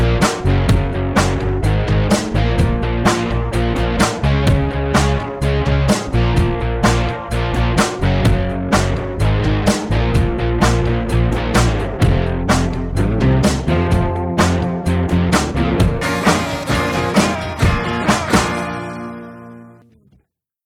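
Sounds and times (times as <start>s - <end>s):
backing track music in Bb: 0.0s - 20.0s.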